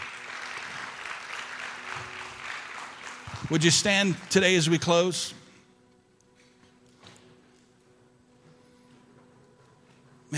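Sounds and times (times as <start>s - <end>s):
audience applause: 0.0s - 4.9s
speech: 3.5s - 5.4s.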